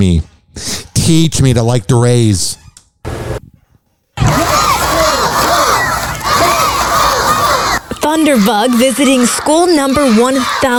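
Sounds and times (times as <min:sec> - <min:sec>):
speech: 0:00.0 - 0:02.6, 0:08.1 - 0:10.7
hundreds of students cheering and shouting: 0:04.2 - 0:10.7.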